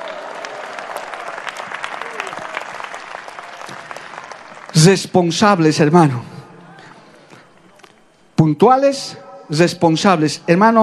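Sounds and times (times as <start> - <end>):
audience applause: 0.0 - 5.0
speech: 4.8 - 6.3, 8.5 - 10.8.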